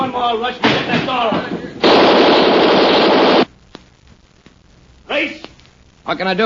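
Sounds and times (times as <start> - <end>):
speech: 0.1 - 1.6, 6.1 - 6.4
machine gun firing: 1.8 - 3.4.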